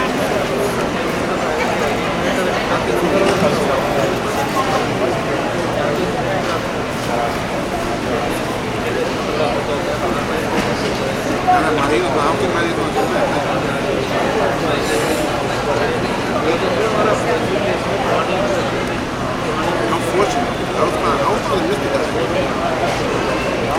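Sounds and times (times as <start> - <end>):
airport departure lounge ambience: 0.0 - 23.7.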